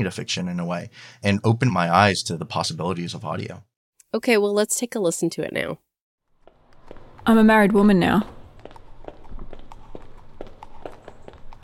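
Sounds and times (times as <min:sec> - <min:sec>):
speech: 0:00.0 - 0:05.9, 0:07.2 - 0:08.4
racehorse hooves clip-clopping in an audio fiction piece: 0:06.4 - 0:11.6.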